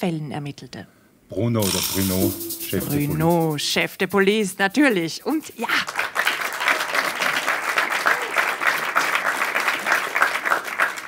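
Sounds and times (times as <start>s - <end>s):
speech: 0.0s - 6.0s
audience applause: 5.8s - 11.0s.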